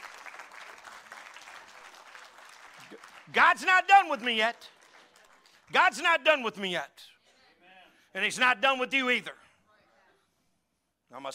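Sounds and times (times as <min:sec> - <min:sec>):
audience applause: 0:00.0 - 0:05.7
speech: 0:02.9 - 0:04.8, 0:05.7 - 0:07.1, 0:08.2 - 0:09.4, 0:11.1 - 0:11.3.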